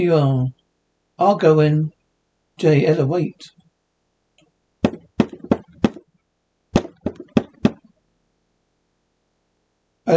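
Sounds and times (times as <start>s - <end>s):
speech: 0.0s - 0.6s, 1.2s - 2.0s, 2.6s - 3.6s
sharp knocks on a door: 4.8s - 6.0s, 6.8s - 7.8s.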